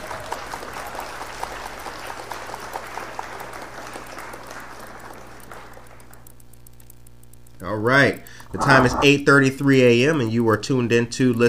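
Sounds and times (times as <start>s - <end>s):
applause from a small group: 0.0s - 6.3s
speech: 7.7s - 11.4s.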